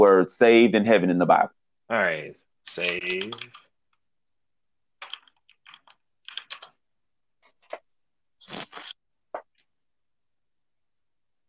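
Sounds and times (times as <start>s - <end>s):
speech: 0.0s - 3.6s
typing a search on a computer keyboard: 3.0s - 3.7s, 5.0s - 6.8s.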